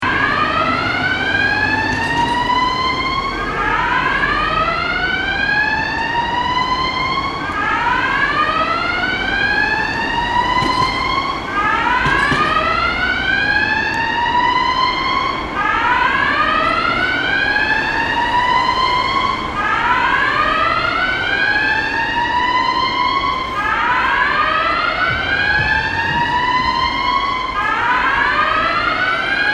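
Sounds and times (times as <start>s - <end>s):
alarm: 0.0s - 29.5s.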